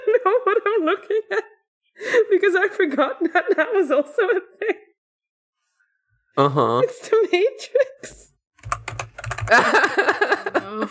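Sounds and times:
laughter: 0.0 - 1.6, 9.5 - 10.8
speech: 0.3 - 4.8, 6.4 - 8.2, 9.5 - 10.1
typing a search on a computer keyboard: 8.6 - 9.8.

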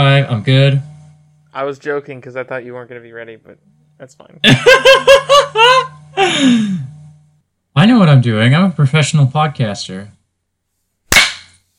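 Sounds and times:
speech: 0.0 - 0.9, 1.5 - 6.9, 7.8 - 10.2
laughter: 4.4 - 6.7
single hand clap: 11.1 - 11.6.

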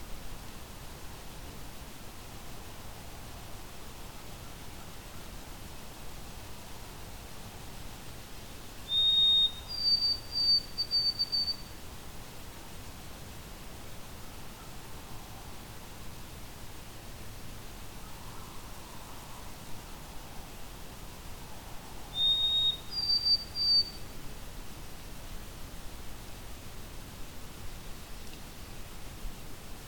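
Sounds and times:
steady soft hiss at Fletcher Creek Ecological Preserve: 0.0 - 29.8
White-throated Sparrow singing: 8.9 - 11.7, 22.1 - 24.1.

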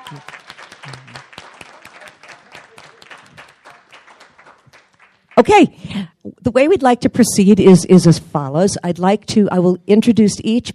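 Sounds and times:
conference audience applauding a panelist: 0.0 - 5.4
speech: 0.1 - 1.3, 5.4 - 10.7.

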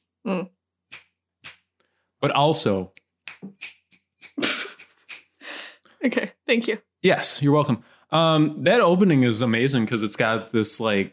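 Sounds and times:
speech: 0.2 - 0.5, 2.2 - 3.8, 6.0 - 11.1
finger snapping: 3.0 - 5.3.

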